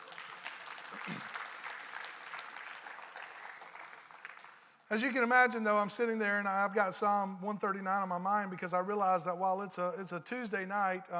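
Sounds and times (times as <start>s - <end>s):
audience applause: 0.0s - 4.8s
speech: 4.9s - 11.1s.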